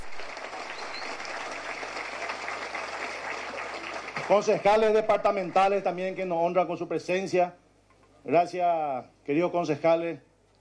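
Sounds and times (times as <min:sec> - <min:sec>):
audience applause: 0:00.0 - 0:05.9
speech: 0:04.2 - 0:07.6, 0:08.2 - 0:10.3.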